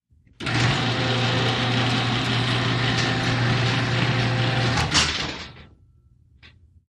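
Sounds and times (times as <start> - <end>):
electric garage door opening: 0.4 - 5.8.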